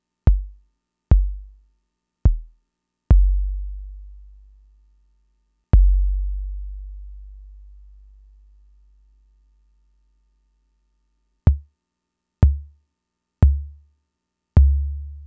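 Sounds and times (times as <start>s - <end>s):
Fricke MFB-522 drum machine kicks: 0.3s - 1.5s, 2.3s - 3.7s, 5.8s - 6.6s, 11.5s - 11.7s, 12.4s - 12.7s, 13.4s - 13.8s.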